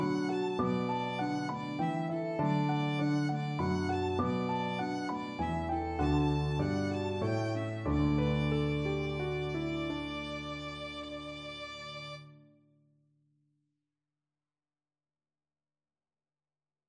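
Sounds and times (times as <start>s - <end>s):
violin trio: 0.0s - 12.3s.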